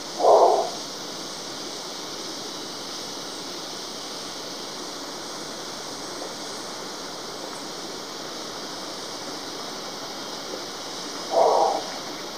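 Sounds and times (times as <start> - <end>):
Long-wattled Umbrellabird calling: 0.2 - 0.8, 11.2 - 12.2.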